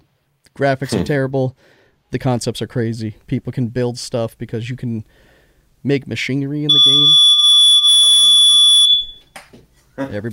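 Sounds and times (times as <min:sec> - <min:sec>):
speech: 0:00.6 - 0:07.4, 0:10.0 - 0:10.3
loud steady electronic alarm tone: 0:06.7 - 0:09.3.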